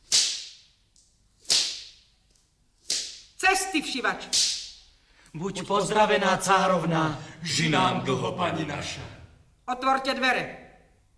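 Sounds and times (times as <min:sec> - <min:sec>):
whip whistling through the air: 0:00.0 - 0:00.7, 0:01.4 - 0:02.0, 0:02.8 - 0:03.4, 0:04.2 - 0:04.8
speech: 0:03.5 - 0:04.6, 0:05.3 - 0:10.6.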